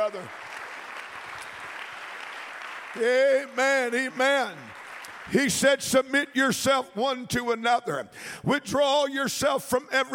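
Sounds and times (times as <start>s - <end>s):
congregation clapping hands during a church service: 0.0s - 7.2s
speech: 0.1s - 0.5s, 2.9s - 4.7s, 5.3s - 10.1s.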